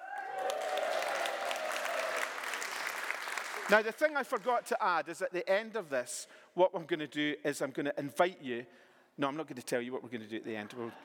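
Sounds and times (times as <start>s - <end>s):
audience applause welcoming the teams: 0.0s - 4.0s
speech: 3.7s - 11.0s.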